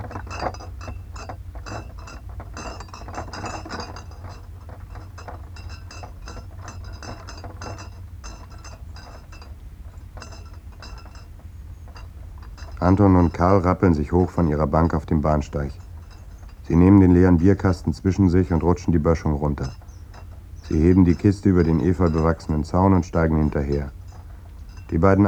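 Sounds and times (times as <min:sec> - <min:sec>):
railway distant signal arm screeching: 0:11.4 - 0:25.2
speech: 0:12.8 - 0:15.8, 0:16.7 - 0:19.8, 0:20.7 - 0:24.0, 0:24.9 - 0:25.2.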